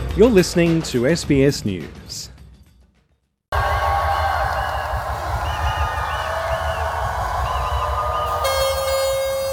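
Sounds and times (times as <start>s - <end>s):
speech: 0.2s - 2.3s
parade crowd cheering: 3.5s - 9.5s
horn blast: 4.9s - 9.5s.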